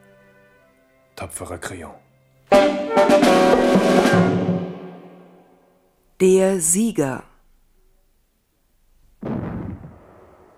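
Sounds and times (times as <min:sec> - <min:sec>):
speech: 0:01.2 - 0:02.1, 0:02.9 - 0:04.4, 0:06.2 - 0:07.3
small cannons firing salute shots: 0:09.2 - 0:10.5.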